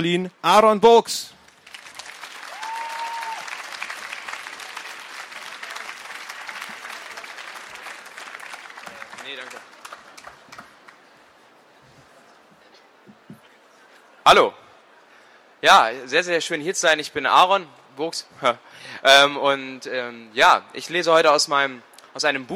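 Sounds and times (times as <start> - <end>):
speech: 0.0 - 1.4, 14.3 - 14.6, 15.6 - 22.5
audience applause: 1.4 - 11.2.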